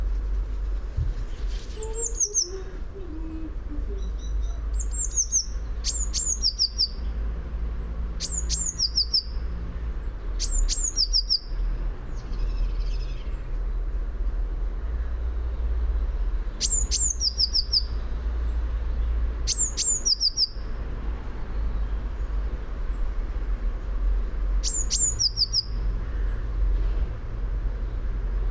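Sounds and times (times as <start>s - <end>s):
low background rumble: 0.0s - 28.4s
Eurasian blue tit calling: 1.7s - 2.7s, 3.3s - 7.2s, 8.2s - 9.4s, 10.2s - 13.4s, 16.6s - 18.1s, 19.4s - 20.7s, 24.6s - 26.4s.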